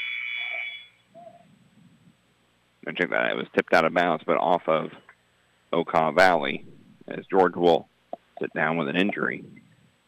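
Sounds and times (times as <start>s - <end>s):
referee's whistle blast at a basketball game: 0.0s - 1.0s
speech: 2.9s - 5.0s, 5.7s - 9.6s.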